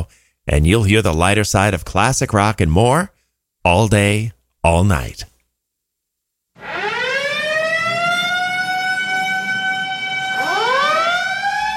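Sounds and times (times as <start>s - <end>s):
speech: 0.0s - 5.3s
emergency siren wailing: 6.6s - 11.7s.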